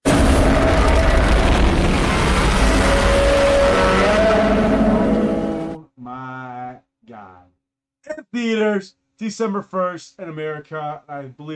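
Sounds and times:
rumbling and roaring booms from Godzilla Minus One movie trailer: 0.0 - 5.8
speech: 8.2 - 11.5.

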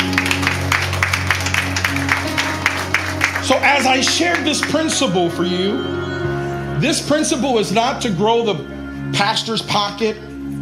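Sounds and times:
audience clapping in a steady even rhythm: 0.0 - 5.4
sustained low musical drone: 0.0 - 10.5
speech: 3.5 - 6.2, 6.8 - 10.3.

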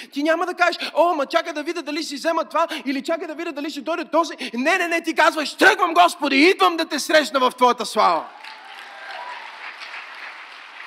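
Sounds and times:
speech: 0.0 - 8.6
audience applauding: 8.3 - 10.8.

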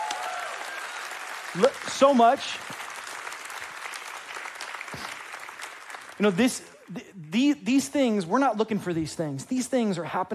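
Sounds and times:
audience applauding: 0.0 - 7.5
speech: 1.5 - 2.8, 6.2 - 10.3.

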